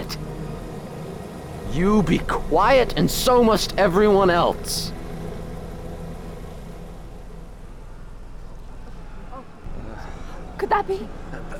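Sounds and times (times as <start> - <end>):
helicopter rotor and engine: 0.0 - 11.5
speech: 1.7 - 5.0, 10.6 - 11.5.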